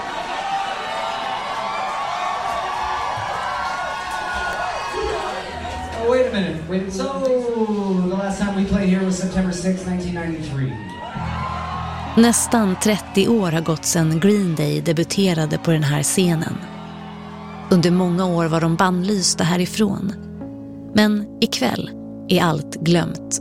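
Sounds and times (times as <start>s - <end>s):
shouts and whoops: 0.0s - 6.2s, 10.6s - 17.8s
large crowd roaring and cheering: 0.0s - 19.2s
speech: 6.4s - 11.0s, 12.2s - 16.7s, 17.7s - 20.3s, 21.0s - 23.4s.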